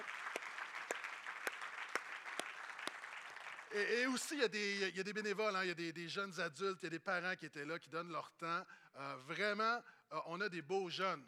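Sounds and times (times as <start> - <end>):
audience applause: 0.0 - 3.8
speech: 3.7 - 11.2.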